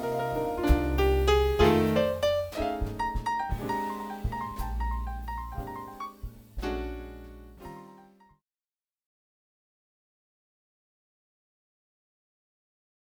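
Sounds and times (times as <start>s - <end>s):
blues music: 0.0s - 8.0s.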